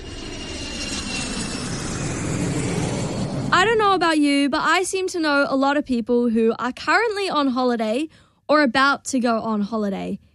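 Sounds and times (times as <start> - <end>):
airplane jet engine roar at the airport: 0.0 - 4.4
speech: 3.6 - 10.3.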